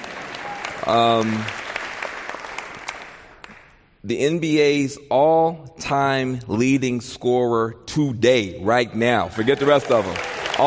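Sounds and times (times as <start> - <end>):
audience clapping: 0.0 - 3.8, 9.3 - 10.6
speech: 0.8 - 1.6, 4.0 - 10.6.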